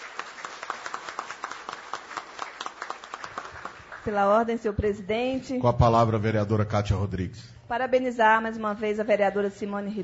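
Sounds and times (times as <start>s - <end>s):
audience applause: 0.0s - 4.1s
speech: 4.0s - 10.0s.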